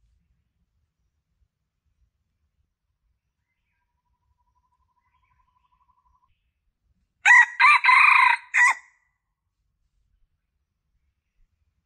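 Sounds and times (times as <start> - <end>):
Red junglefowl crowing: 7.2 - 8.9.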